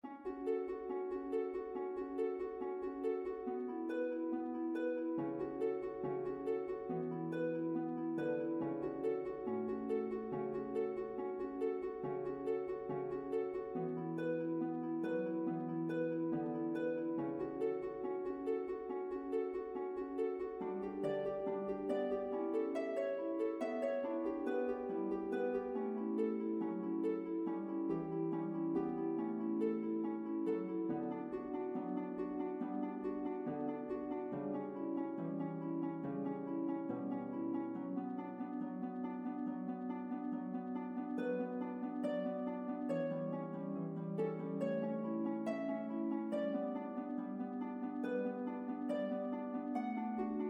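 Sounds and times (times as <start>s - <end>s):
harp: 0.0s - 50.4s.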